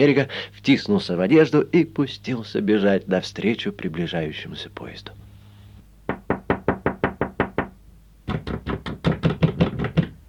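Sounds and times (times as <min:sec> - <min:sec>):
speech: 0:00.0 - 0:05.2
rapid knocking on a locked door: 0:06.1 - 0:10.2.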